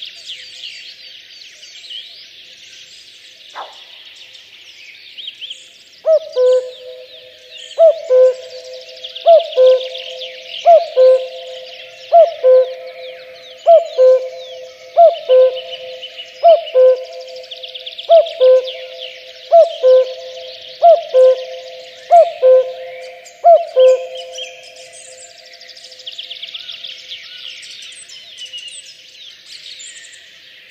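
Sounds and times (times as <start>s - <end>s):
many small birds trilling and chirping: 2.7s - 30.6s
common cuckoo calling: 6.1s - 25.4s.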